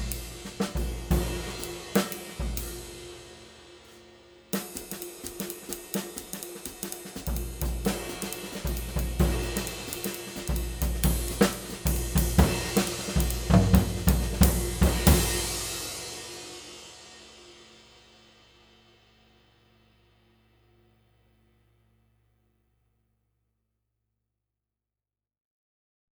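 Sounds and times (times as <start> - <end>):
Istanbul 22 inch flat ride cymbal: 0.0 - 20.9.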